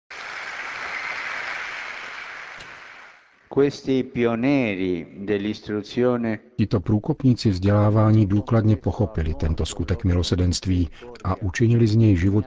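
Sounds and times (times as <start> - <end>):
audience applause: 0.1 - 3.4
speech: 3.5 - 12.4.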